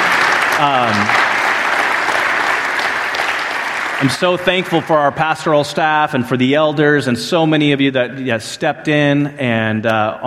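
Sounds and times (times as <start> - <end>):
round of applause: 0.0 - 6.0
speech: 0.6 - 1.2, 4.0 - 10.2.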